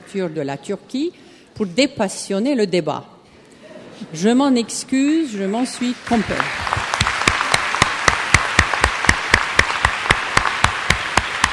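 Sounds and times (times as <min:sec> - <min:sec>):
speech: 0:00.1 - 0:03.2, 0:04.1 - 0:06.7
audience applause: 0:05.9 - 0:11.5.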